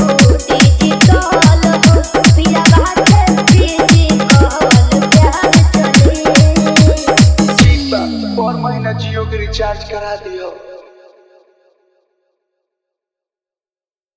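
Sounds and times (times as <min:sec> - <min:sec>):
dholak drumming mix: 0:00.0 - 0:09.3.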